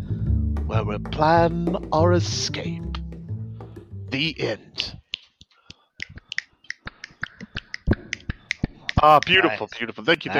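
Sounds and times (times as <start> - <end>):
speech: 0.7 - 2.9, 4.1 - 5.0, 9.0 - 10.3
jaw clicking: 4.8 - 9.4.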